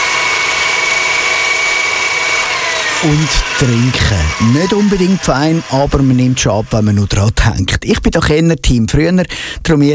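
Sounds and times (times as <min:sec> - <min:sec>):
blender mixing a smoothie: 0:00.0 - 0:07.7
speech: 0:03.0 - 0:09.9.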